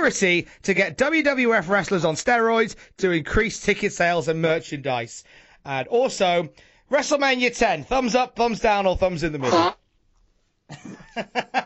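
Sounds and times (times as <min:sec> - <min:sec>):
speech: 0:00.0 - 0:09.8, 0:10.7 - 0:11.6
nose blowing with a honk: 0:09.4 - 0:09.8.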